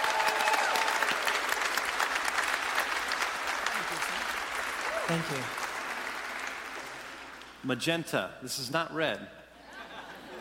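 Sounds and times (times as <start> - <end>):
audience applause on The Voice welcoming a singer: 0.0 - 7.6
speech: 5.1 - 5.6, 7.6 - 9.4
laughter: 9.6 - 10.3.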